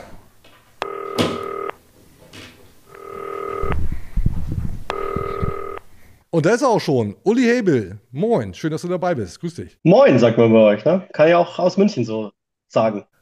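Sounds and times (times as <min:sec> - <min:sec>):
ringback tone of an outgoing phone call: 0:00.8 - 0:01.8, 0:02.9 - 0:03.8, 0:04.9 - 0:05.8
speech: 0:06.4 - 0:13.2.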